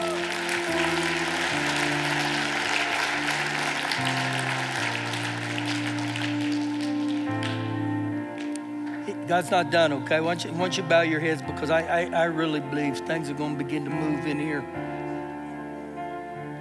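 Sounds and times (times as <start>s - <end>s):
audience clapping: 0.0s - 9.8s
speech: 9.3s - 14.8s.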